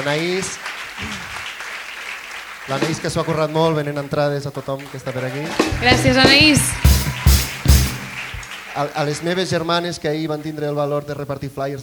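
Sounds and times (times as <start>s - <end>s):
speech: 0.0s - 1.4s, 2.6s - 7.0s, 8.8s - 11.8s
audience applause: 0.0s - 3.6s, 4.8s - 10.6s.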